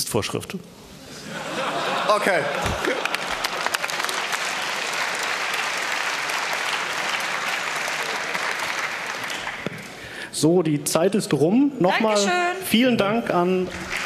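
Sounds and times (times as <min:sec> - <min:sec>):
speech: 0:00.1 - 0:00.9, 0:02.1 - 0:03.2, 0:10.4 - 0:14.0
laughter: 0:01.1 - 0:04.7
audience clapping: 0:02.0 - 0:10.2, 0:13.6 - 0:14.0.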